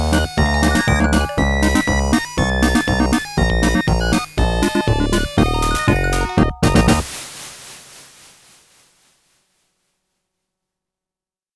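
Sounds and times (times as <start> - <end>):
silly FM synthesizer groove: 0.0 - 7.0.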